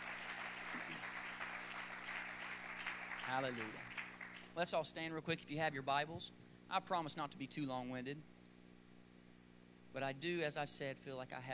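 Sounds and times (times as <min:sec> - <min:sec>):
audience clapping hands: 0:00.0 - 0:04.6
speech: 0:03.3 - 0:03.9, 0:04.6 - 0:08.3, 0:09.9 - 0:11.5.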